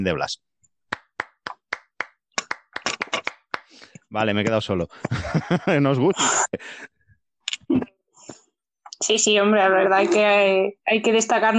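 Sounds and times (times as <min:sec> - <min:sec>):
speech: 0:00.0 - 0:00.5, 0:04.1 - 0:06.9, 0:07.7 - 0:08.0, 0:09.0 - 0:11.5
hand clapping: 0:00.9 - 0:04.0
laughter: 0:05.0 - 0:06.8.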